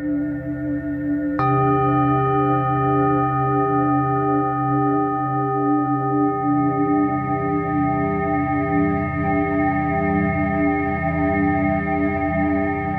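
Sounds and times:
singing bowl humming: 0:00.2 - 0:12.9
singing bowl strike: 0:01.3 - 0:10.6.

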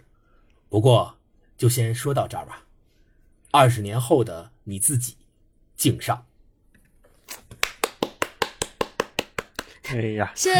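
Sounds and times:
speech: 0:00.7 - 0:02.7, 0:03.5 - 0:05.2, 0:05.8 - 0:06.3, 0:09.9 - 0:10.5
one person clapping: 0:07.5 - 0:09.9.

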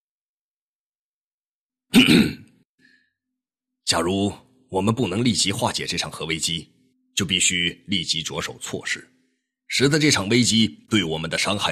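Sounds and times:
throat clearing: 0:01.9 - 0:02.6
speech: 0:02.0 - 0:02.4, 0:03.9 - 0:11.7.

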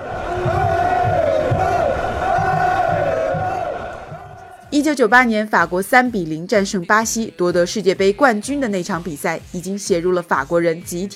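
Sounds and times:
French football fans chanting: 0:00.0 - 0:04.9
speech: 0:04.8 - 0:11.1.

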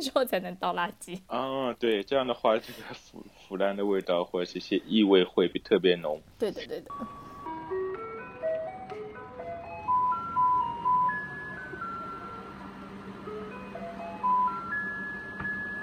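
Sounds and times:
speech: 0:00.0 - 0:07.2
garbage truck playing ice-cream-van style music: 0:06.9 - 0:15.8.

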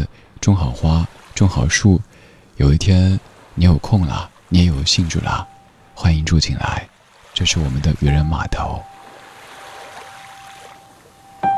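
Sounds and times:
speech: 0:00.0 - 0:08.9
light drizzle falling on the sea: 0:00.0 - 0:11.5
faint sustained tone: 0:05.1 - 0:06.0, 0:08.0 - 0:11.5.

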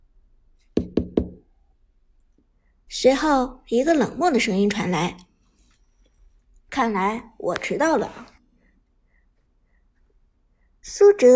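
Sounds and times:
knocking on a door: 0:00.8 - 0:01.4
speech: 0:03.0 - 0:05.2, 0:06.7 - 0:08.3, 0:10.8 - 0:11.3.

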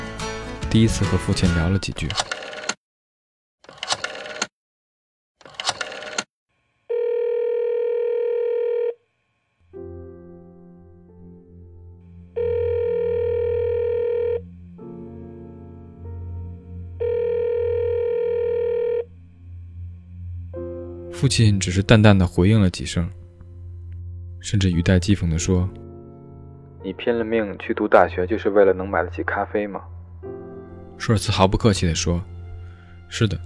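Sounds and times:
speech: 0:00.7 - 0:02.3, 0:21.2 - 0:23.2, 0:24.4 - 0:25.9, 0:26.8 - 0:30.4, 0:31.0 - 0:32.3, 0:33.1 - 0:33.4
phone being dialed: 0:02.1 - 0:02.8, 0:03.6 - 0:04.5, 0:05.4 - 0:06.3
steady buzzing telephone tone: 0:06.9 - 0:09.1, 0:12.3 - 0:14.6, 0:17.0 - 0:19.3.

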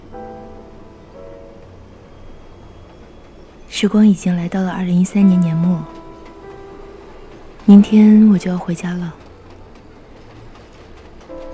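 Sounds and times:
train running on rails: 0:00.0 - 0:11.5
speech: 0:03.7 - 0:06.0, 0:07.7 - 0:09.2.

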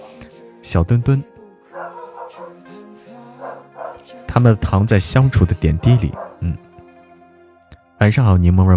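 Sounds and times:
speech: 0:00.6 - 0:01.4, 0:04.4 - 0:06.6, 0:08.0 - 0:08.7
small dog barking: 0:01.7 - 0:02.6, 0:03.4 - 0:04.1, 0:06.0 - 0:06.6.

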